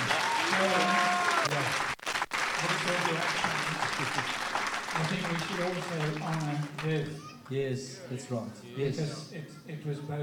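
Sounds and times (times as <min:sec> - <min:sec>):
audience applause: 0:00.0 - 0:07.0
speech: 0:05.6 - 0:10.2.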